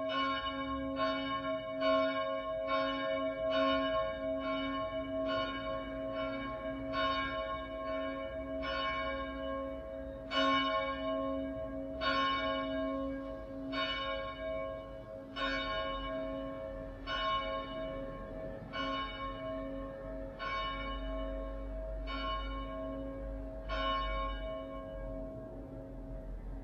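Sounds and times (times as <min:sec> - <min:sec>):
cathedral bell tuned to C sharp: 0:00.0 - 0:25.7.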